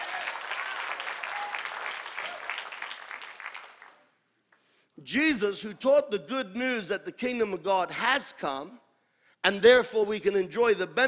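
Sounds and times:
audience clapping: 0:00.0 - 0:04.2
speech: 0:05.1 - 0:08.8, 0:09.4 - 0:11.0.

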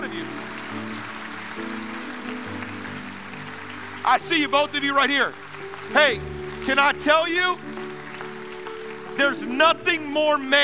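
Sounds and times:
round of applause: 0:00.0 - 0:10.6
speech: 0:04.1 - 0:07.7, 0:09.2 - 0:10.6.

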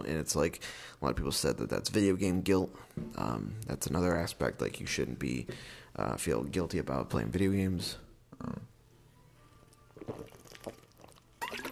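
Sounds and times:
speech: 0:00.0 - 0:08.7
water pouring: 0:10.0 - 0:11.7.

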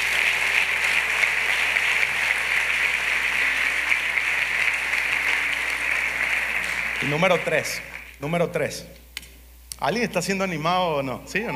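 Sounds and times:
loud audience applause: 0:00.0 - 0:08.2
speech: 0:07.0 - 0:09.0, 0:09.8 - 0:11.5.

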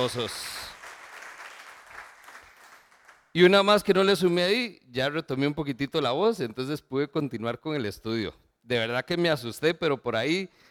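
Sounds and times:
speech: 0:00.0 - 0:00.6, 0:03.4 - 0:10.6
audience applauding: 0:00.0 - 0:03.4.

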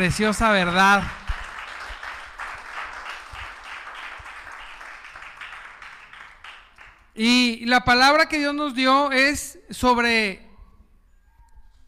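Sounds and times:
speech: 0:00.0 - 0:01.2, 0:07.2 - 0:10.4
audience applauding: 0:00.6 - 0:07.2.

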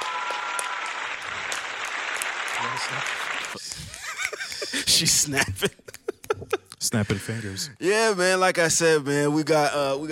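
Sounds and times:
applause: 0:00.0 - 0:04.9
speech: 0:02.6 - 0:03.9, 0:04.8 - 0:05.8, 0:06.8 - 0:10.1
laughter: 0:03.7 - 0:07.6.

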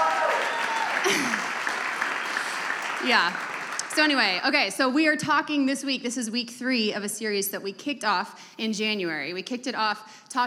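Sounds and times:
people cheering: 0:00.0 - 0:03.9
room full of people clapping: 0:00.0 - 0:04.5
speech: 0:03.0 - 0:10.4.

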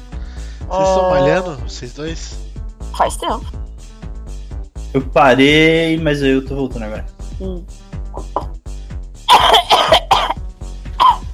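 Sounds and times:
speech: 0:00.7 - 0:03.6, 0:04.9 - 0:07.8
person coughing after choking on a clove: 0:09.3 - 0:10.4, 0:11.0 - 0:11.3.

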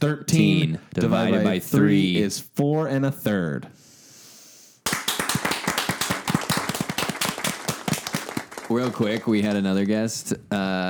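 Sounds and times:
speech: 0:00.0 - 0:03.8, 0:08.7 - 0:10.8
hosts clapping: 0:04.8 - 0:09.8.

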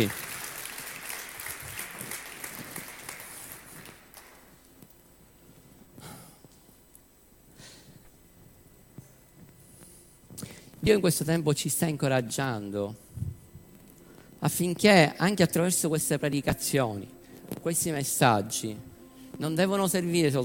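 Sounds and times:
speech: 0:00.0 - 0:00.2, 0:10.8 - 0:13.1, 0:14.4 - 0:20.4
audience applause: 0:00.0 - 0:04.5.

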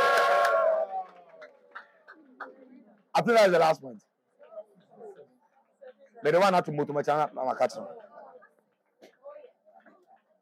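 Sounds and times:
audience cheering and shouting: 0:00.0 - 0:01.4
audience clapping: 0:00.0 - 0:02.2
speech: 0:03.2 - 0:04.1, 0:06.2 - 0:08.0.

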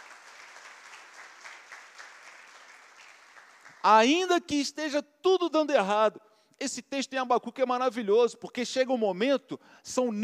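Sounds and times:
audience applauding: 0:00.0 - 0:03.9
speech: 0:03.8 - 0:10.2.

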